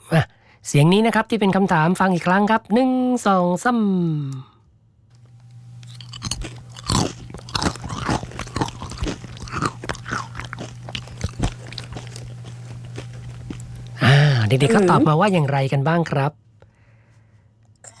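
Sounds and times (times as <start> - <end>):
speech: 0.1 - 4.5, 14.6 - 16.4
person chewing popcorn: 5.8 - 15.1.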